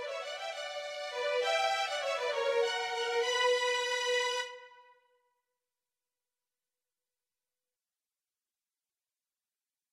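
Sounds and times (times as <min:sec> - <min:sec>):
violin duet: 0:00.0 - 0:04.8.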